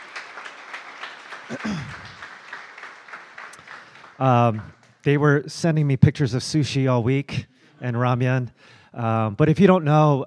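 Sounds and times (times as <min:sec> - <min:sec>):
church congregation clapping to welcome back their team from Japan: 0:00.0 - 0:05.4
speech: 0:01.5 - 0:02.1, 0:04.2 - 0:10.2.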